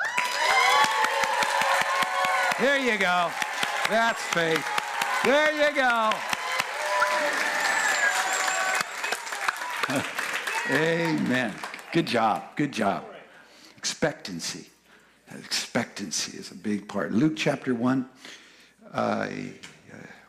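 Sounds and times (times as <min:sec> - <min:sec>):
audience clapping: 0:00.0 - 0:12.6
speech: 0:02.6 - 0:06.3, 0:09.9 - 0:10.1, 0:10.7 - 0:13.1, 0:14.0 - 0:14.7, 0:15.3 - 0:19.7.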